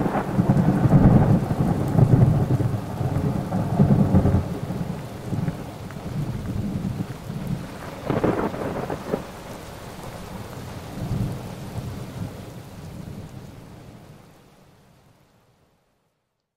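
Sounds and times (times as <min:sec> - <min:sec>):
thunder: 0:00.0 - 0:09.6
rain: 0:00.0 - 0:16.5.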